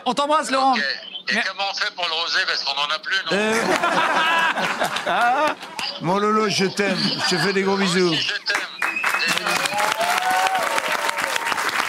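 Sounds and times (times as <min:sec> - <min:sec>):
speech: 0:00.0 - 0:08.7
laughter: 0:03.3 - 0:05.8, 0:06.8 - 0:08.1
audience applause on a French television set: 0:04.5 - 0:06.0, 0:08.4 - 0:11.8.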